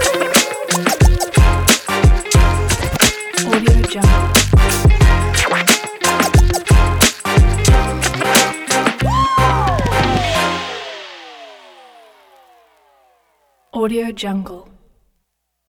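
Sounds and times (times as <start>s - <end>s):
vlog hip hop music: 0.0s - 11.5s.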